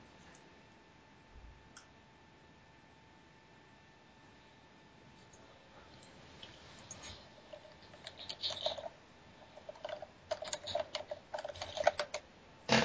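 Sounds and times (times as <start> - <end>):
player typing on a computer keyboard during online role-playing session: 7.5 - 8.9, 9.5 - 12.2.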